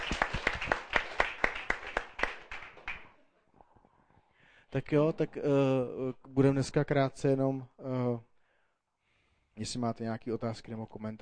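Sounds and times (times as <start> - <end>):
audience clapping: 0.0 - 3.2
speech: 4.7 - 8.3, 9.6 - 11.2.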